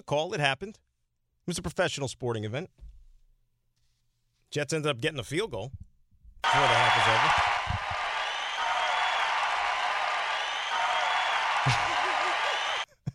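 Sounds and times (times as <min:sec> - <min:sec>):
speech: 0:00.1 - 0:00.9, 0:01.5 - 0:02.9, 0:04.5 - 0:07.5
looped applause: 0:06.4 - 0:12.9.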